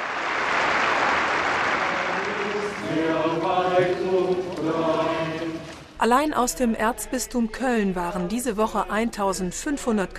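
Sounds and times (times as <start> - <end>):
pilgrims applauding: 0.0 - 5.9
speech: 2.9 - 5.3, 6.0 - 10.1.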